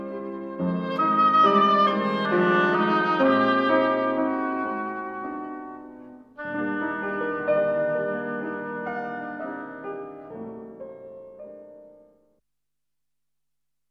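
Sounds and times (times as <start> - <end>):
oboe: 0.0 - 9.9
piano: 0.0 - 12.4.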